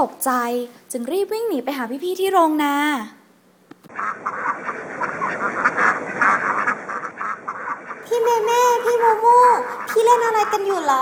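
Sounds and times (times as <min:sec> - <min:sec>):
speech: 0:00.0 - 0:03.2, 0:03.8 - 0:07.0, 0:08.1 - 0:11.0
duck quacking: 0:03.9 - 0:11.0.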